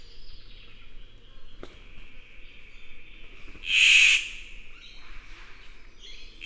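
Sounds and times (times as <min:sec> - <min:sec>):
Victoria's riflebird Ptiloris victoriae calling: 0:03.6 - 0:04.4.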